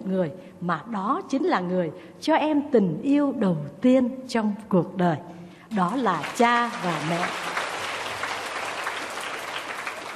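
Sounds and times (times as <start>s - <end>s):
speech: 0.1s - 7.5s
schoolchildren applauding during a teacher's talk: 5.9s - 10.1s.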